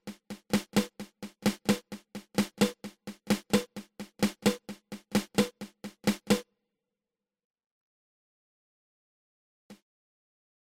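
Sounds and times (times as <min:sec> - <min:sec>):
drum rudiment patafla fla: 0:00.0 - 0:06.4.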